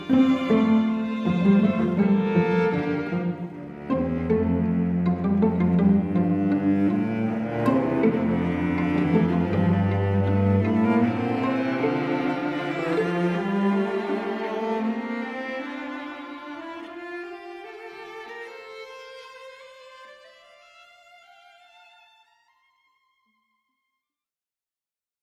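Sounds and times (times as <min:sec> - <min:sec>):
quartet playing: 0:00.0 - 0:14.6.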